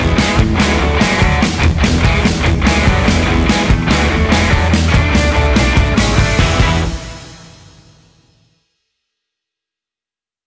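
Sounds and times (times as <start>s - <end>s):
rock music for a commercial: 0.0s - 8.2s.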